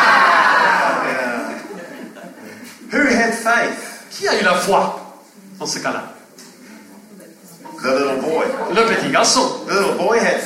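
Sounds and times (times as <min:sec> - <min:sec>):
crowd shouting wow: 0:00.0 - 0:01.6
laughter: 0:00.0 - 0:02.9
speech: 0:04.3 - 0:05.0, 0:05.6 - 0:06.2, 0:07.8 - 0:10.4.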